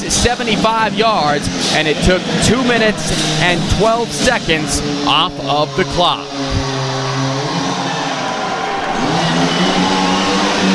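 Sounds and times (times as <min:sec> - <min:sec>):
speech: 0:00.0 - 0:06.5
chainsaw cutting logs in Flagstaff: 0:00.0 - 0:10.7.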